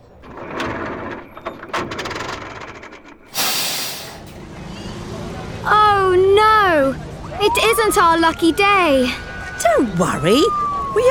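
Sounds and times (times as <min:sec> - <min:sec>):
bus engine rumbling and clanking: 0:00.0 - 0:09.8
air hissing: 0:03.2 - 0:04.4
speech: 0:07.4 - 0:11.1.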